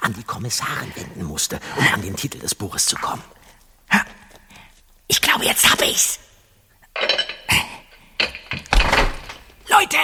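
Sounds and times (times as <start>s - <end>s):
speech: 0.1s - 4.0s, 5.4s - 6.2s
loud door bolt sliding: 8.2s - 9.6s.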